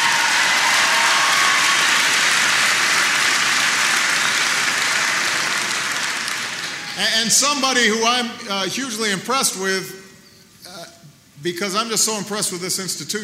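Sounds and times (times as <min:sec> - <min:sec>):
audience applause: 0:00.0 - 0:07.4
speech: 0:07.0 - 0:10.0, 0:11.4 - 0:13.2.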